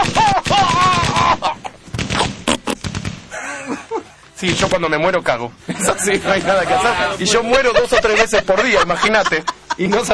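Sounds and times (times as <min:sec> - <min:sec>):
laughter: 0:00.0 - 0:01.8, 0:03.3 - 0:04.2, 0:05.7 - 0:10.1
Smith & Wesson revolver gunshots sound effect: 0:00.0 - 0:03.4, 0:04.4 - 0:05.1
speech: 0:04.4 - 0:10.1.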